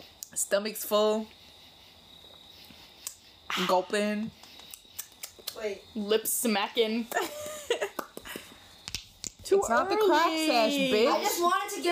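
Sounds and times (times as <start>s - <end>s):
speech: 0.0s - 1.4s, 3.6s - 4.4s, 5.6s - 7.4s, 9.5s - 11.8s
crickets chirping outdoors: 0.0s - 11.8s
little cicadas: 0.0s - 11.8s.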